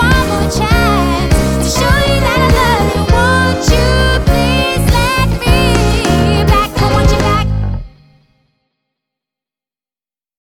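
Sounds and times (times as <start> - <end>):
rock pop band: 0.0 - 7.9.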